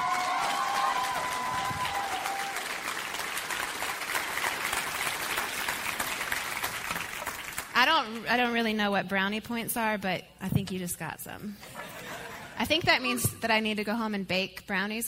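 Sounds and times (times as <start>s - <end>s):
high cheers or whistles: 0.0s - 2.9s
large crowd applauding: 0.0s - 7.9s
speech: 8.0s - 11.7s, 12.6s - 15.0s
laughter: 11.6s - 12.6s.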